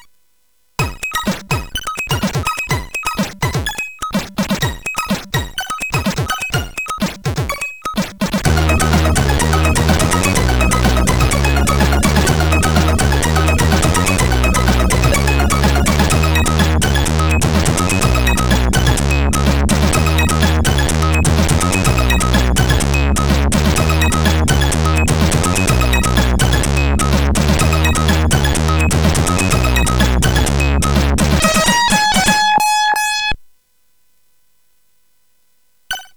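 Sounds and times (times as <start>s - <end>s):
remixed chiptune on CSG8580R5 chip: 0.8s - 33.4s.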